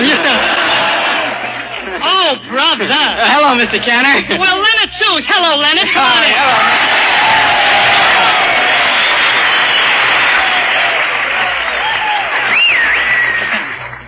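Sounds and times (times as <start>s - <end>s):
studio audience applause: 0.0s - 2.0s, 6.3s - 14.0s
laughter: 0.0s - 4.4s
speech: 2.3s - 7.0s
cheers and whoops: 6.6s - 13.8s.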